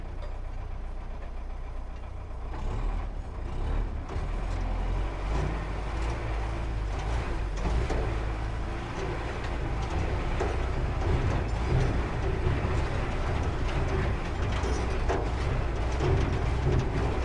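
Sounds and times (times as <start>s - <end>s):
garbage truck engine starting and driving uphill, recorded onboard at exhaust: 0.0s - 17.2s.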